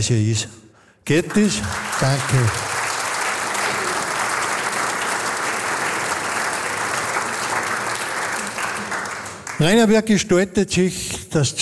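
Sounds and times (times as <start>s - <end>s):
speech: 0.0s - 2.7s, 9.6s - 11.6s
crowd clapping: 1.1s - 10.1s.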